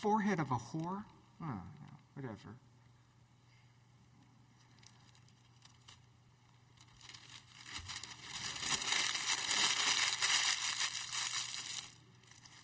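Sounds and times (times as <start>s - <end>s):
speech: 0.0s - 2.7s
paper scroll being cut and burned in a brazier: 4.6s - 12.6s.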